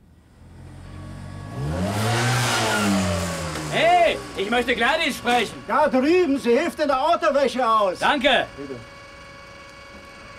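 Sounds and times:
motorcycle engine revving as the rider drives off: 0.4 - 9.0
speech: 4.4 - 8.9.

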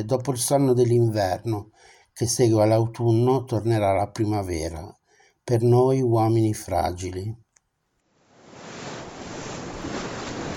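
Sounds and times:
speech: 0.0 - 7.4
sea waves: 8.2 - 10.5.

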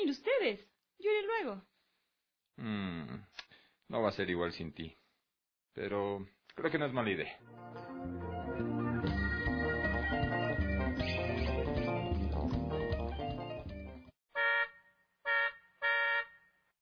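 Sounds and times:
speech: 0.1 - 1.7, 2.6 - 3.3, 3.9 - 5.0, 5.8 - 9.2
music: 7.4 - 14.1
car horn honks from an aunt waiting outside: 14.4 - 16.6.

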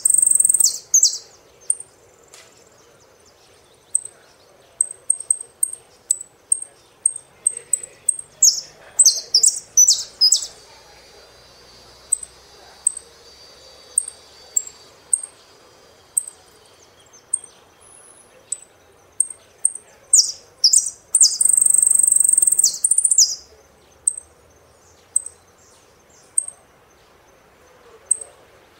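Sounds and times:
Saffron finch singing: 0.0 - 28.7
faint hiss: 0.0 - 28.7.

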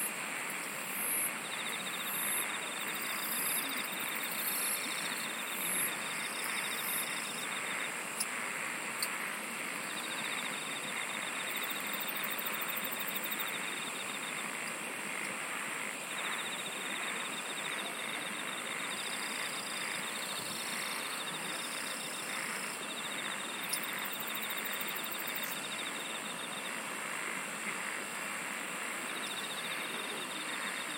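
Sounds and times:
insects trilling: 0.0 - 30.9.

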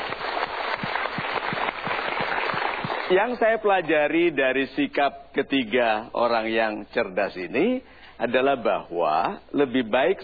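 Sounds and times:
audience applause at a motivational seminar: 0.0 - 3.2
speech: 3.1 - 10.2.

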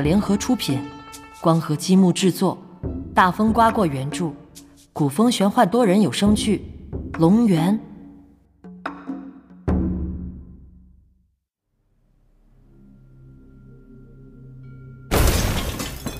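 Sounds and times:
speech: 0.0 - 2.6, 3.2 - 4.4, 5.0 - 7.9
ceramic pickle jar shattering: 15.1 - 16.1.

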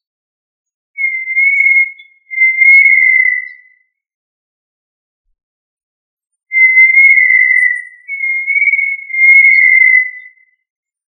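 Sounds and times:
tinamou giving long steady pure whistles: 1.0 - 3.7, 6.5 - 10.4.

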